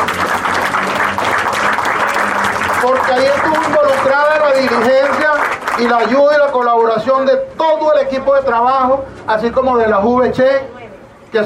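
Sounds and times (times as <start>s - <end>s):
audience applause at a parish community gathering: 0.0s - 7.0s
speech: 2.8s - 10.7s.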